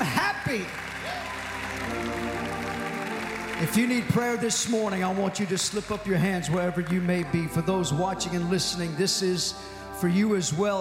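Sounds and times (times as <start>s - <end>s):
audience clapping hands: 0.0s - 8.4s
speech: 0.5s - 0.8s, 3.6s - 10.7s.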